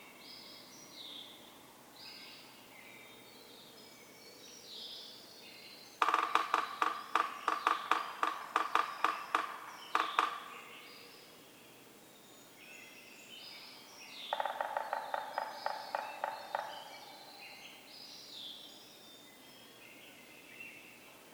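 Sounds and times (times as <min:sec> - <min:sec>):
faint bird song: 0:00.0 - 0:21.3
Yellow-bellied Sapsucker drumming: 0:06.0 - 0:10.7, 0:14.3 - 0:17.2.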